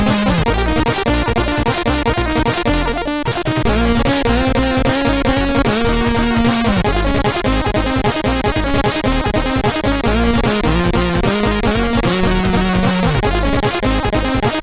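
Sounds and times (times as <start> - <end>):
music on a MOS CSG8580R5 sound chip: 0.0 - 14.6.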